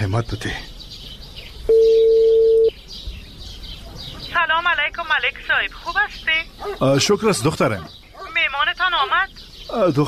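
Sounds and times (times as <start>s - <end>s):
faint bird chirps: 0.0s - 10.0s
speech: 0.1s - 0.7s, 4.8s - 8.0s, 8.8s - 10.0s
mobile phone call steady electronic tone: 1.7s - 2.7s.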